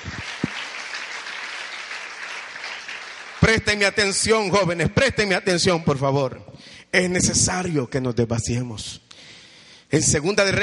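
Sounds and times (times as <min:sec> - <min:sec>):
church congregation applause: 0:00.0 - 0:03.9
speech: 0:03.4 - 0:09.0, 0:09.9 - 0:10.6.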